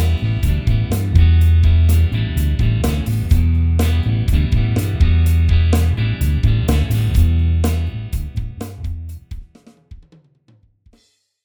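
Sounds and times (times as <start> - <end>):
solo backing music: 0.0 - 9.1.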